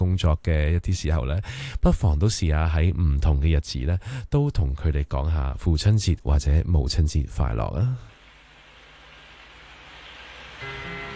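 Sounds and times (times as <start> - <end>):
speech: 0.2 - 8.1
light rain at start of song: 8.1 - 11.1.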